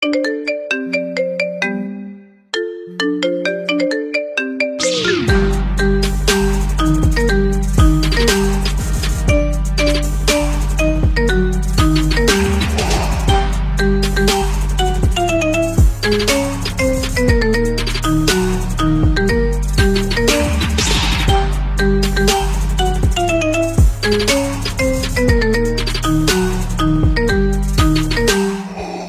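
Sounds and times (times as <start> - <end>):
marimba remix: 0.0 - 29.0.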